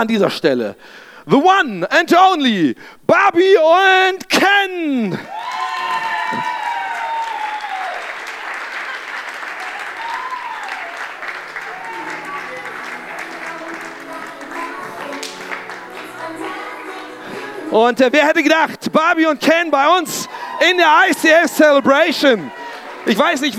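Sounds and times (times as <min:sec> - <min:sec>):
speech: 0:00.0 - 0:05.6, 0:17.7 - 0:23.5
crowd applause: 0:05.3 - 0:17.7, 0:19.1 - 0:23.5.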